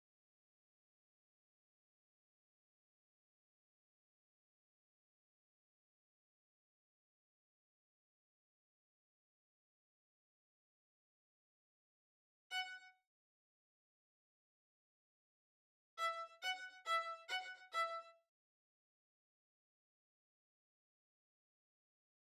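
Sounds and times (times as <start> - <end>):
violin: 12.5 - 13.0, 16.0 - 18.2.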